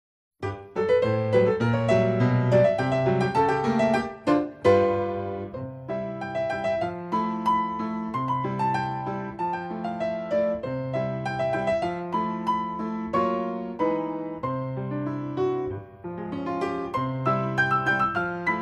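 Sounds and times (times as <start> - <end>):
ragtime piano: 0.4 - 18.6.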